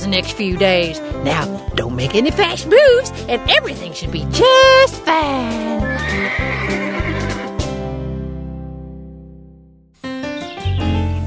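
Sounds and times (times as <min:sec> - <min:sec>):
speech: 0:00.1 - 0:07.3
horse Lulu neighing at a ranch resort: 0:05.8 - 0:07.6.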